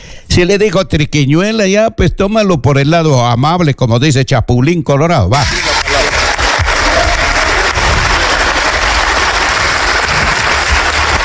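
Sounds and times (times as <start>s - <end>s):
speech: 0.4s - 5.7s
crowd applause: 5.4s - 11.2s.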